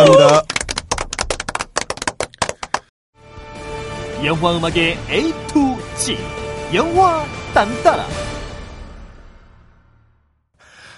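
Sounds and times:
applause: 0.0s - 2.9s
speech: 4.2s - 8.3s.

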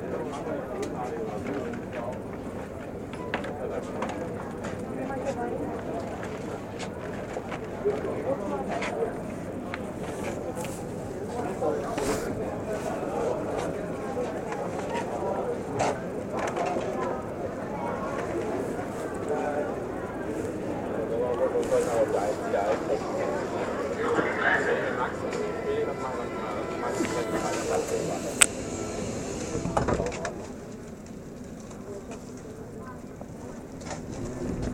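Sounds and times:
muffled voices at Märkisches Museum: 0.0s - 34.7s
bright tone: 22.7s - 29.8s.

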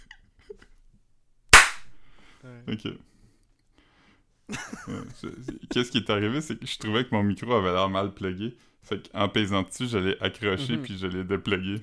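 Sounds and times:
single sharp loud hand clap: 1.6s - 2.0s
speech: 2.4s - 3.1s, 4.5s - 11.8s
laughter: 4.5s - 5.9s, 10.4s - 11.3s.

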